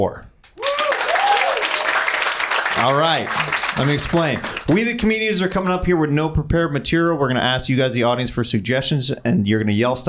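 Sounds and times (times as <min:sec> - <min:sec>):
speech: 0:00.0 - 0:00.3, 0:02.8 - 0:10.0
whoops and cheers: 0:00.5 - 0:02.7
crowd applause: 0:00.5 - 0:04.9.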